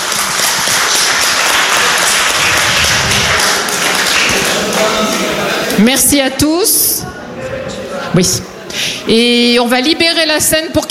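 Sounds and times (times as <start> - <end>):
people on stage applauding themselves: 0.0 - 5.8
speech: 5.8 - 6.8, 8.2 - 10.8.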